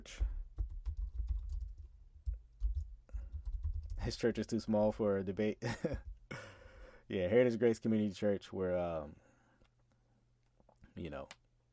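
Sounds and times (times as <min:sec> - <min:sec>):
speech: 0:00.0 - 0:00.3, 0:04.0 - 0:06.1, 0:07.1 - 0:09.2, 0:11.0 - 0:11.4
fingers typing on a computer keyboard: 0:00.5 - 0:04.2.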